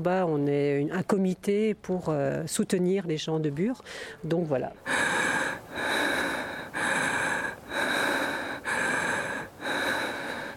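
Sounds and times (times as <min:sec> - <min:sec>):
speech: 0:00.0 - 0:06.0
slow deep inhaling and exhaling, breathing exercise: 0:03.8 - 0:04.2, 0:04.8 - 0:10.5.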